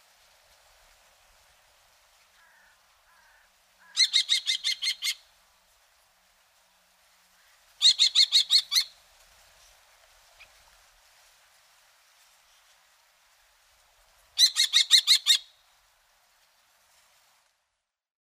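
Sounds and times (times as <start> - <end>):
Falco tinnunculus tinnunculus calling: 2.4 - 5.2, 7.8 - 9.0, 14.4 - 15.5.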